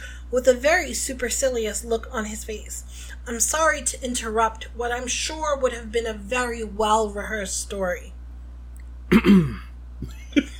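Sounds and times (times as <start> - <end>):
speech: 0.3 - 8.2, 9.1 - 10.5
person imitating throat clearing during a read-aloud of a fantasy novel: 9.1 - 10.5.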